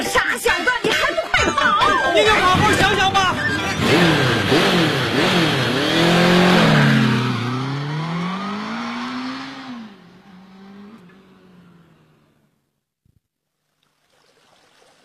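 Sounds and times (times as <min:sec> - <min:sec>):
laughter: 0:00.0 - 0:04.8
motorcycle engine revving: 0:02.3 - 0:12.6.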